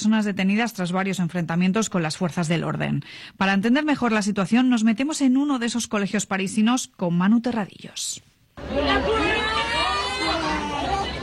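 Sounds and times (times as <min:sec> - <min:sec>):
speech: 0:00.0 - 0:09.3
students chanting at a protest: 0:08.6 - 0:11.2
students shouting at a protest: 0:08.6 - 0:11.2.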